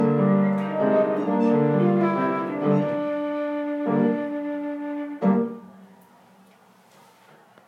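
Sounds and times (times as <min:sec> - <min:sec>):
flute playing a sicilienne: 0:00.0 - 0:05.9.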